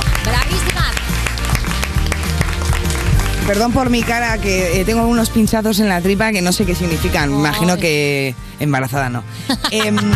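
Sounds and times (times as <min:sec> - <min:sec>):
audience applause: 0:00.0 - 0:04.4
speech: 0:03.5 - 0:10.1
laughter: 0:09.5 - 0:10.1.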